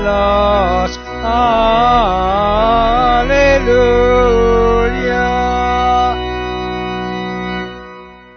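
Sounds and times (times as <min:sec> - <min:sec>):
person singing lyrics: 0:00.0 - 0:06.5
organ playing: 0:00.0 - 0:08.3.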